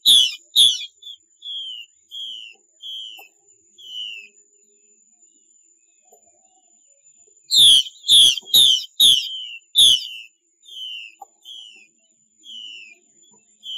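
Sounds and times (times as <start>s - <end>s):
Chinese hwamei song: 0.0s - 4.4s, 7.5s - 13.7s.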